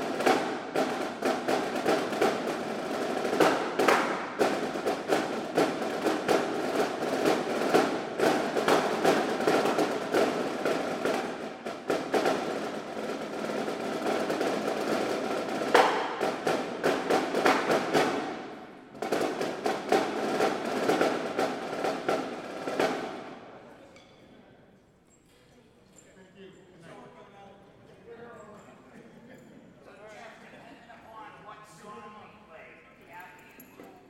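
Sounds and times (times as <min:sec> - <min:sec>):
snare drum cadence: 0:00.0 - 0:23.4.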